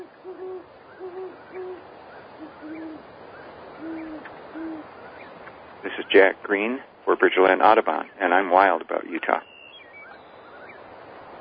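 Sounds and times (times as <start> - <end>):
great horned owl hooting: 0.0 - 6.4, 9.3 - 10.9
low steady hiss: 0.0 - 11.3
speech: 5.9 - 9.5.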